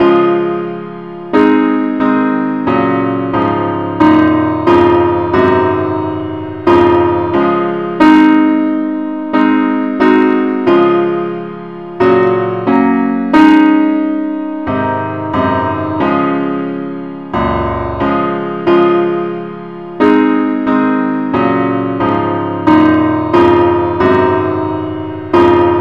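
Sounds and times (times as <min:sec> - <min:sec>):
accompaniment in the key of C sharp: 0:00.0 - 0:25.7.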